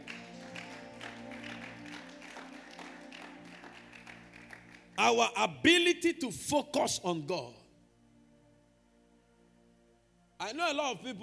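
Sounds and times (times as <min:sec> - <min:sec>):
audience clapping: 0:00.0 - 0:05.0
speech: 0:05.0 - 0:07.6, 0:10.5 - 0:11.2.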